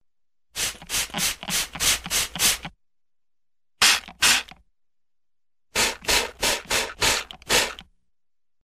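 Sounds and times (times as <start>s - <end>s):
aerosol sprayer spraying: 0.6s - 2.8s, 3.8s - 4.6s, 5.8s - 7.9s.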